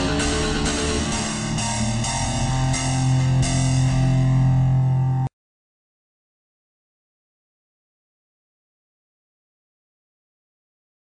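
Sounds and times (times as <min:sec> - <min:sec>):
dark pulsing title screen music: 0:00.0 - 0:05.3.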